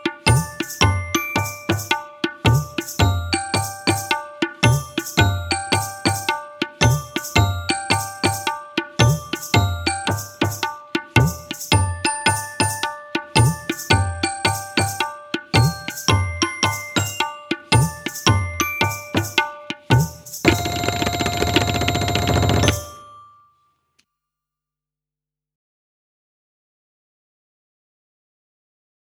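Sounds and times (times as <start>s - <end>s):
tabla in a group piece: 0.0s - 23.2s.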